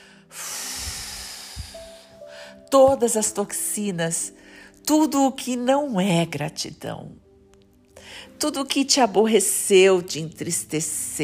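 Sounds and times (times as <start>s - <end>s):
long exhale during a guided gratitude meditation: 0.0s - 2.6s
speech: 2.7s - 7.2s, 8.4s - 11.2s.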